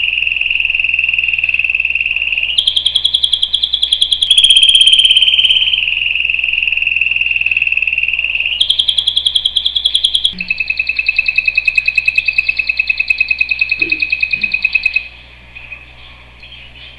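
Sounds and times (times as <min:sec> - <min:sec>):
canary singing trills: 0:00.0 - 0:16.9.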